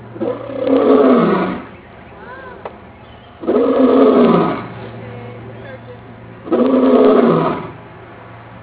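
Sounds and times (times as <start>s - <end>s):
lion roar: 0.1s - 1.7s, 3.4s - 4.7s, 6.4s - 7.8s.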